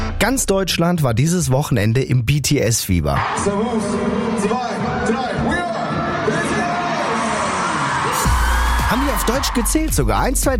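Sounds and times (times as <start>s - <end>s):
speech: 0.2s - 5.7s, 8.9s - 10.5s
thousands of concert fans cheering: 3.2s - 10.5s.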